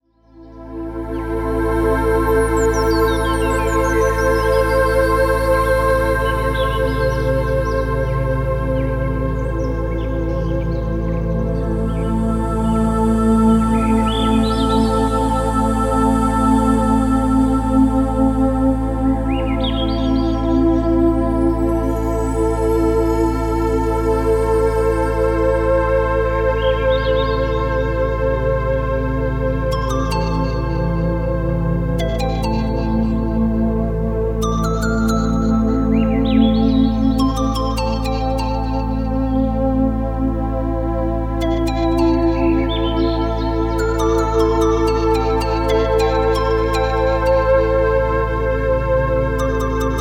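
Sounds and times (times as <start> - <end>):
music for Reiki and meditation: 0.0 - 49.9.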